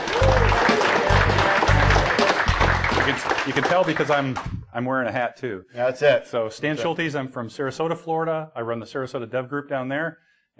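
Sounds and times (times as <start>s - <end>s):
crowd applause: 0.0s - 4.6s
speech: 3.4s - 10.5s
low thumping: 4.4s - 4.8s.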